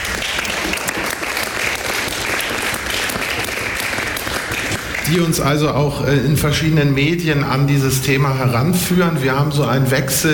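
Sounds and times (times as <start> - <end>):
audience applause: 0.0 - 5.6
speech: 5.1 - 10.3.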